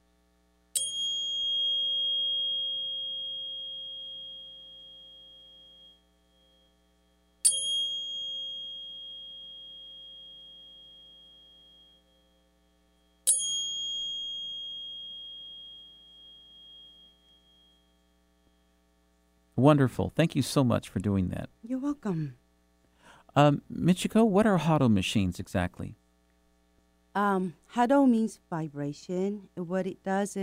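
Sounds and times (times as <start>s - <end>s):
faint low hum: 0.0s - 13.4s, 14.1s - 30.4s
528 hertz tuning fork struck and ringing: 0.1s - 19.6s
speech: 19.6s - 22.4s, 23.4s - 26.0s, 27.2s - 30.4s.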